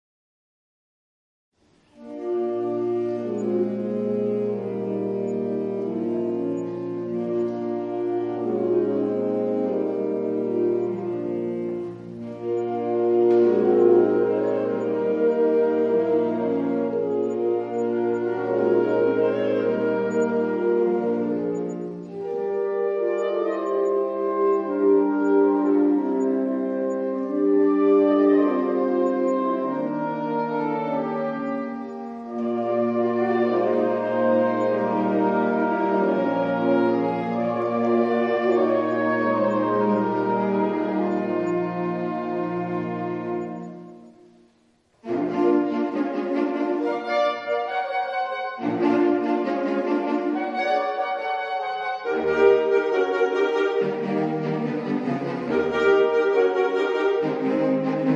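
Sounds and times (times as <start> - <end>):
saxophone ensemble: 1.6 - 58.1.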